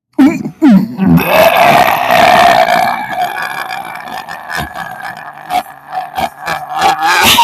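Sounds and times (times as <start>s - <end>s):
big burp: 0.7s - 7.4s.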